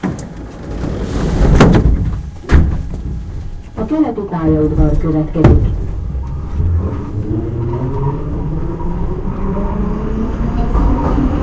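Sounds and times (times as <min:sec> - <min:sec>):
Hungarian train doors closing: 0:00.0 - 0:06.7
steady loud low train rumble: 0:00.0 - 0:11.4
speech: 0:03.9 - 0:05.9.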